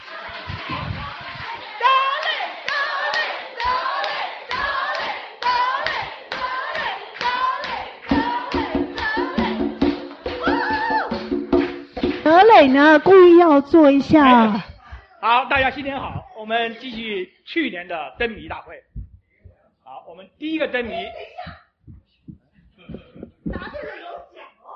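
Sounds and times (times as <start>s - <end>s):
audience clapping: 0.0s - 9.2s, 9.8s - 13.5s
speech: 12.5s - 18.9s, 20.0s - 21.6s.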